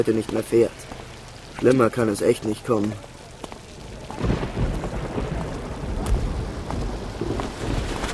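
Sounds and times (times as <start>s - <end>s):
speech: 0.0s - 1.0s, 1.6s - 3.1s
heavy rain: 0.0s - 8.1s
thunder rumbling: 3.7s - 8.1s.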